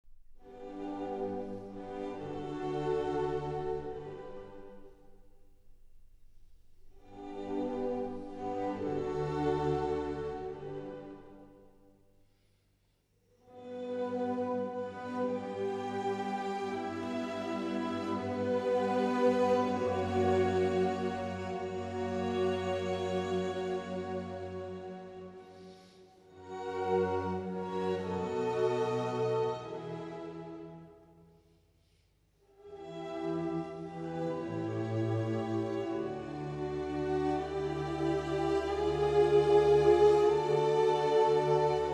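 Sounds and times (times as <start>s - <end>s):
violin concerto: 0.4s - 5.2s, 6.9s - 11.4s, 13.5s - 30.9s, 32.6s - 41.9s.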